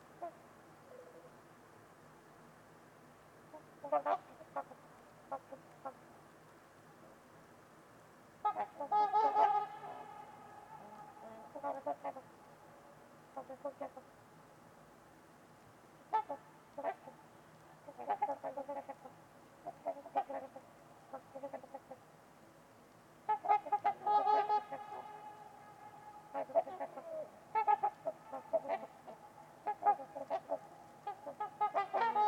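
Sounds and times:
trumpeter swans honking: 0:03.5 - 0:06.0, 0:08.4 - 0:14.1, 0:16.1 - 0:17.2, 0:17.9 - 0:22.0, 0:23.2 - 0:32.2
speech: 0:03.8 - 0:04.3.

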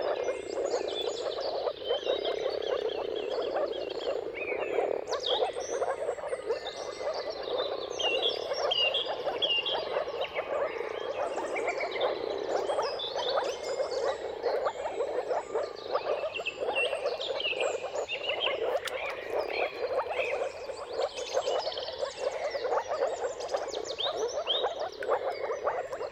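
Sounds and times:
dawn chorus birds singing: 0:00.0 - 0:26.1
moor frogs bubbling chorus: 0:00.0 - 0:26.1.

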